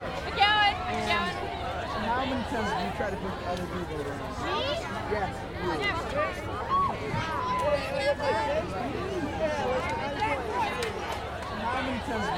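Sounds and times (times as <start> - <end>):
teen crowd: 0.0 - 12.3.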